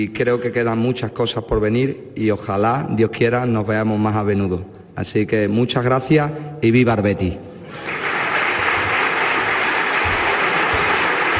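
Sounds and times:
speech: 0:00.0 - 0:08.0
applause for award recipient: 0:07.7 - 0:11.3.

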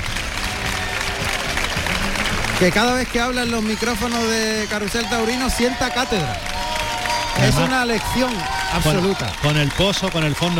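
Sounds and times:
faint murmur of voices: 0:00.0 - 0:10.5
large bullring crowd ovation applause: 0:00.0 - 0:10.5
speech: 0:02.6 - 0:06.5, 0:07.4 - 0:10.5.

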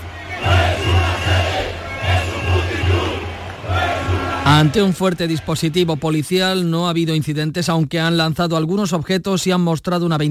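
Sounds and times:
protest crowd chanting outside party headquarters: 0:00.0 - 0:06.2
speech: 0:04.5 - 0:10.2.

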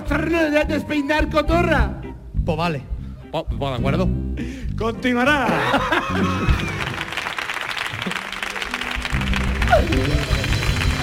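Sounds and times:
speech: 0:00.1 - 0:06.8, 0:09.7 - 0:10.4
laughter: 0:05.4 - 0:07.1
audience applause: 0:06.0 - 0:11.0.

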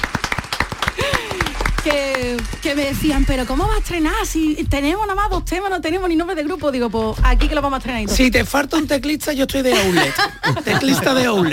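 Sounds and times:
audience applause: 0:00.0 - 0:03.7
speech: 0:01.8 - 0:11.5
laughter: 0:09.6 - 0:11.5.

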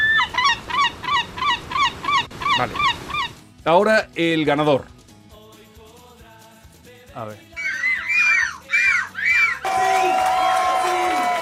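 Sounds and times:
person imitating a seagull with chick: 0:00.0 - 0:03.4, 0:07.6 - 0:09.6
speech: 0:02.6 - 0:02.9, 0:03.6 - 0:05.0, 0:07.2 - 0:07.5
crowd cheering and shouting: 0:07.6 - 0:11.4.

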